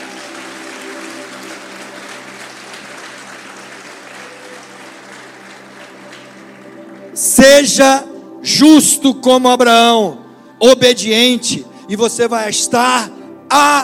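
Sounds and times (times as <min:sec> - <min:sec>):
audience applauding: 0:00.0 - 0:07.2
speech: 0:07.3 - 0:13.8.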